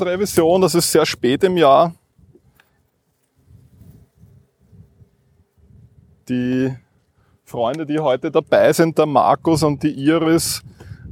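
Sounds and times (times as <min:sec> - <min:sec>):
speech: 0:00.0 - 0:02.0, 0:06.3 - 0:06.8, 0:07.5 - 0:11.0
honeybees buzzing at an opened hive: 0:00.0 - 0:07.4.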